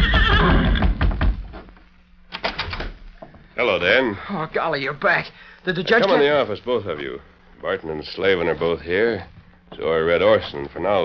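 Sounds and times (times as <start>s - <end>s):
horse whinnying: 0.0s - 1.0s
low steady hum: 0.0s - 11.0s
speech: 3.6s - 11.0s.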